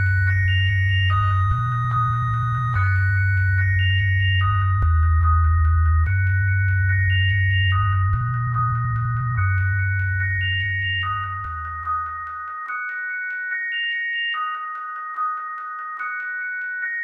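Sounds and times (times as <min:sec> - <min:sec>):
sine wave tone: 0:00.0 - 0:17.0.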